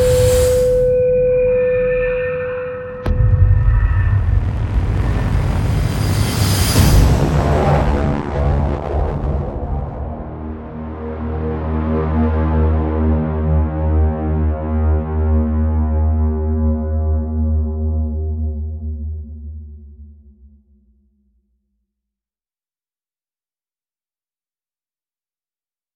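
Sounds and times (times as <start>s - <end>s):
epic movie trailer cinematic music: 0.0s - 18.8s.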